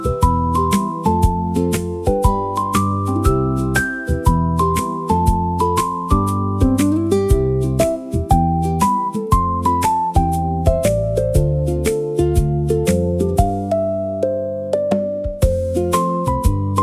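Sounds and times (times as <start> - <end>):
ukulele music: 0.0 - 16.8.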